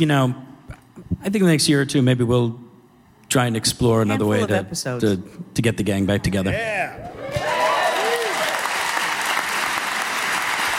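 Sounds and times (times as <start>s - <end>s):
speech: 0.0s - 0.4s, 1.2s - 2.6s, 3.3s - 7.4s
crowd applause: 7.2s - 10.7s.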